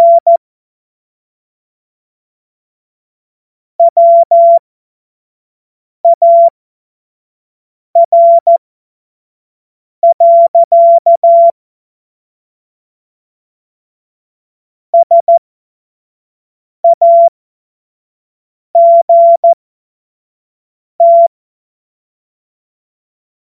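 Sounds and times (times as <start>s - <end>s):
CW Morse code beeps: 0.0s - 0.4s, 3.8s - 4.6s, 6.1s - 6.5s, 8.0s - 8.6s, 10.0s - 11.5s, 15.0s - 15.4s, 16.8s - 17.3s, 18.8s - 19.6s, 21.0s - 21.3s.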